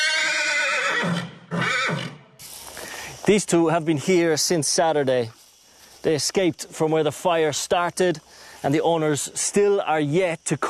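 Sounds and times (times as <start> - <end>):
horse whinnying: 0.0 - 2.2
speech: 3.3 - 5.4, 6.0 - 10.6.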